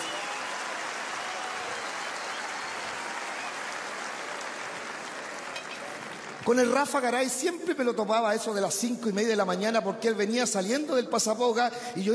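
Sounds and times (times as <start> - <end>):
crowd applause: 0.0 - 6.8
speech: 6.5 - 12.1.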